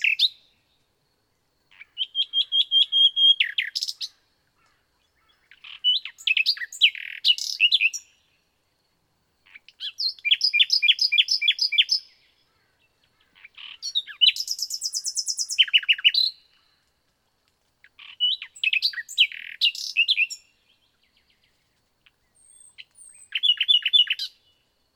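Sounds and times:
common nightingale singing: 0:00.0 - 0:08.6, 0:09.4 - 0:16.9, 0:17.8 - 0:24.9.

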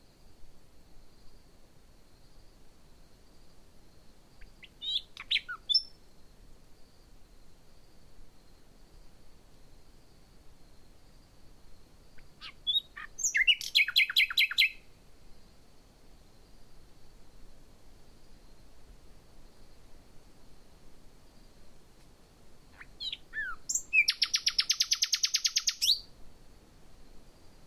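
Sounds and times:
common nightingale singing: 0:04.4 - 0:08.8, 0:09.6 - 0:17.6, 0:22.6 - 0:26.2.

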